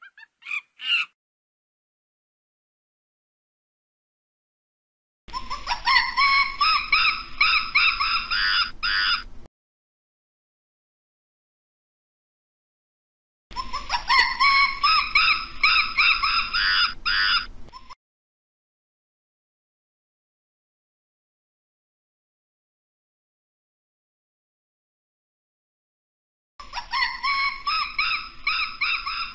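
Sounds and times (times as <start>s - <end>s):
monkey screaming calls: 0.0s - 1.2s, 5.9s - 9.2s, 13.6s - 17.5s, 26.7s - 29.3s.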